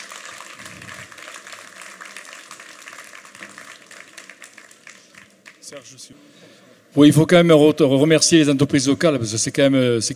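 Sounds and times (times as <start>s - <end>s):
audience applause: 0.0s - 5.7s
speech: 5.7s - 10.1s.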